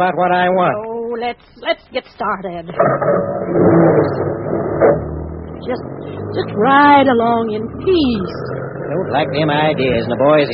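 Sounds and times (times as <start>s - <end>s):
speech: 0.0s - 10.5s
car engine revving while driving: 2.4s - 10.5s.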